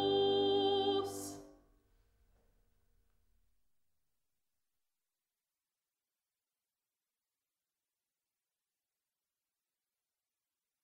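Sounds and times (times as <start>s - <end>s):
soprano singing: 0.0s - 1.5s.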